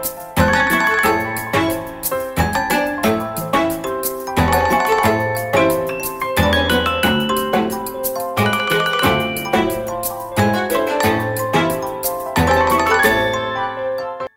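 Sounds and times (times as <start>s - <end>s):
Motorola Moto E22s original phone ringtone: 0.4s - 14.3s.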